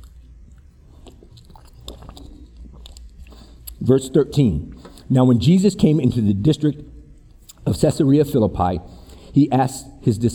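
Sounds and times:
speaker sipping water: 0:00.0 - 0:03.8
speech: 0:03.8 - 0:06.9, 0:07.8 - 0:10.3.

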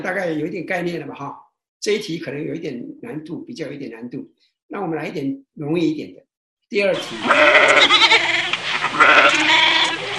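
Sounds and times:
speech: 0:00.0 - 0:08.3
goat bleating: 0:07.0 - 0:10.1.

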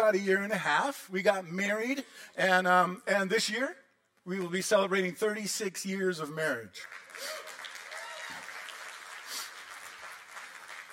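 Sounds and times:
speech: 0:00.0 - 0:07.5
crowd applause: 0:06.8 - 0:10.9.

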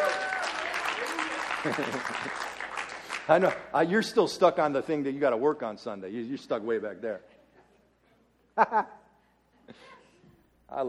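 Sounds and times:
church congregation clapping in a charismatic service: 0:00.0 - 0:03.7
laughter: 0:01.6 - 0:02.6, 0:08.5 - 0:10.2
speech: 0:01.6 - 0:02.6, 0:03.3 - 0:07.3, 0:08.6 - 0:09.0, 0:09.7 - 0:09.9.

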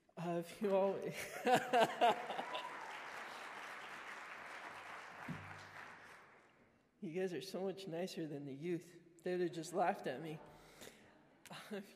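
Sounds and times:
speech: 0:00.4 - 0:02.7, 0:07.0 - 0:10.5, 0:11.7 - 0:11.9
laughter: 0:01.1 - 0:02.9
audience applause: 0:01.6 - 0:06.5
voiced whoops: 0:02.2 - 0:03.4.

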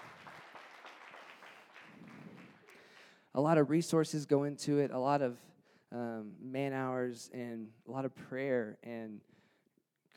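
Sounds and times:
audience applause: 0:00.0 - 0:03.0
speech: 0:03.4 - 0:09.4.

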